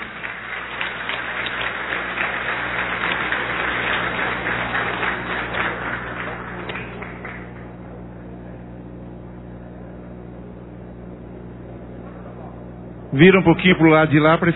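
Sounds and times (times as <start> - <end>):
crowd applause: 0.0 - 8.0
faint murmur: 3.0 - 13.2
speech: 13.2 - 14.5.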